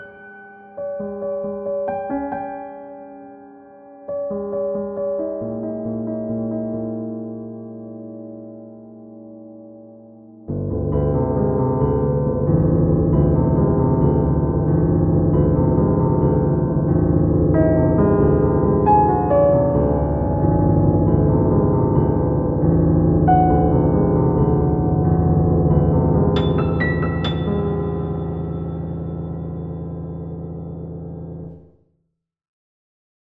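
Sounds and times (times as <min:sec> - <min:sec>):
piano notes without octaves: 0:00.0 - 0:31.7.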